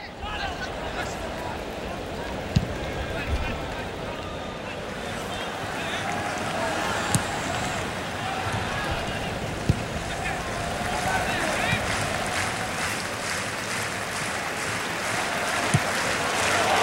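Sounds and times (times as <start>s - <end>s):
large crowd roaring at a football match: 0.0s - 16.8s
football kick thuds: 2.5s - 3.4s, 7.0s - 7.8s, 8.4s - 10.3s, 15.7s - 15.9s.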